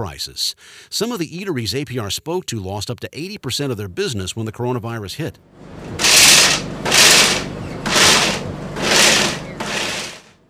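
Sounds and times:
speech: 0.0 - 7.0
blenders buzzing in the Blend Smoothie Bowl food truck: 5.8 - 10.4.

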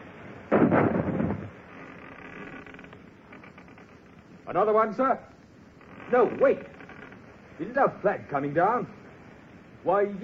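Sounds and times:
ship's cannon firing into an enemy vessel's rigging: 0.5 - 1.5
speech: 4.5 - 5.3, 6.1 - 6.8, 7.6 - 9.0, 9.8 - 10.2.

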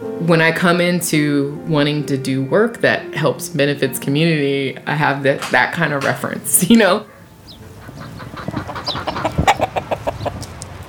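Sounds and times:
speech: 0.0 - 7.1
chickens clucking and squawking on a three-acre North Richmond farm in spring: 6.8 - 10.6.

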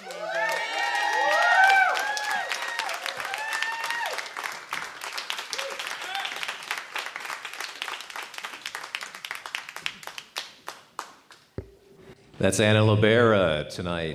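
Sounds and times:
audience cheers and whoops: 0.0 - 4.4, 5.5 - 6.5
audience applause at a live music show in a theater: 0.0 - 11.6
speech: 12.4 - 14.1.

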